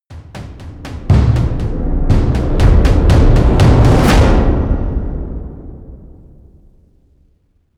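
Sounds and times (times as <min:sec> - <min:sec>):
promo synth pad: 0:00.8 - 0:05.8.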